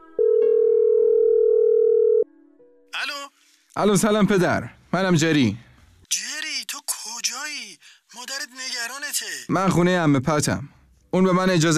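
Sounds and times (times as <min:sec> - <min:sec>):
telephone dial tone: 0:00.2 - 0:02.3
speech: 0:03.8 - 0:06.2, 0:09.5 - 0:11.7.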